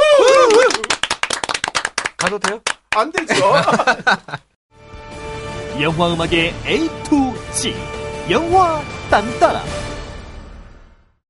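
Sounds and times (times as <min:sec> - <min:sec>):
drawn-out pitch-wavering vocal cheer: 0:00.0 - 0:01.0
few people clapping to send off guests: 0:00.0 - 0:03.9
speech: 0:02.2 - 0:04.5, 0:05.8 - 0:09.8
laughter: 0:03.2 - 0:04.5.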